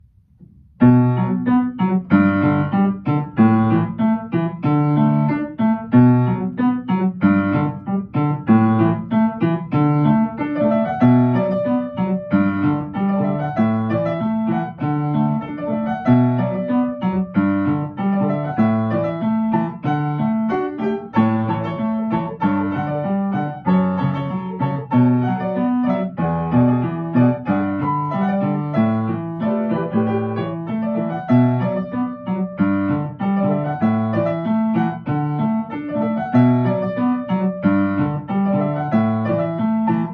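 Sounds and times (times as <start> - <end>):
piano: 0.0 - 40.1.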